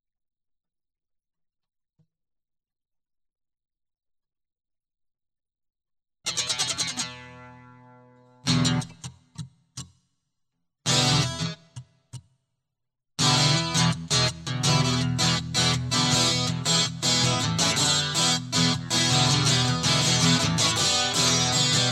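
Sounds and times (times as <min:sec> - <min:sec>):
guitar: 0:06.3 - 0:10.0, 0:10.8 - 0:12.3, 0:13.2 - 0:21.9.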